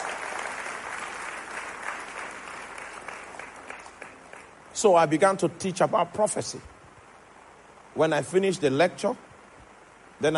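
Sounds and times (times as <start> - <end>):
crowd of people clapping: 0.0 - 4.6
speech: 4.8 - 6.7, 8.0 - 9.3.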